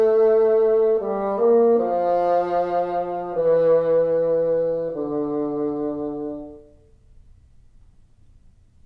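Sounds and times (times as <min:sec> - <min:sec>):
bassoon: 0:00.0 - 0:06.9.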